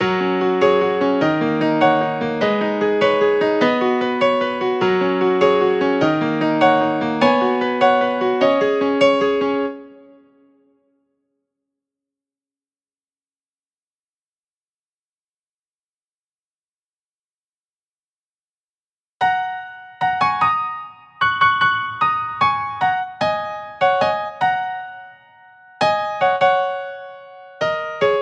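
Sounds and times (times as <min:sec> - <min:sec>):
scenic piano music: 0:00.0 - 0:10.6, 0:19.2 - 0:28.2.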